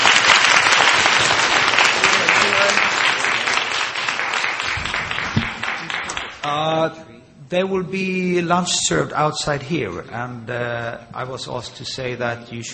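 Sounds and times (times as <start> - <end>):
audience clapping for presenters: 0.0 - 6.6
speech: 7.5 - 12.7.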